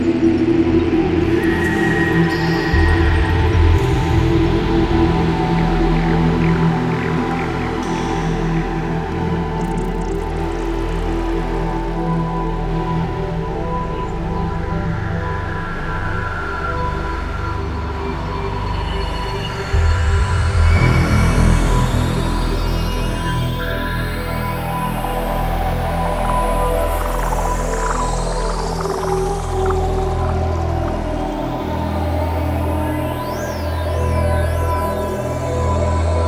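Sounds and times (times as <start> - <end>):
space music: 0.2 - 36.2.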